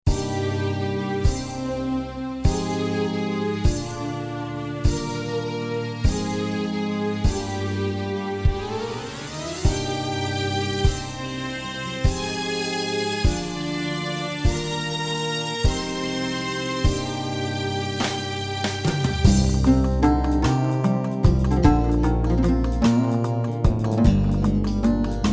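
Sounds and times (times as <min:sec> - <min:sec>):
violin: 0:00.0 - 0:25.3.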